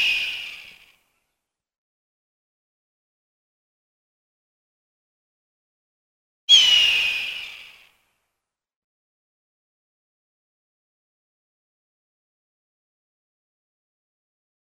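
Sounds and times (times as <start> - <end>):
hawk giving harsh hoarse screams: 6.5 - 7.6.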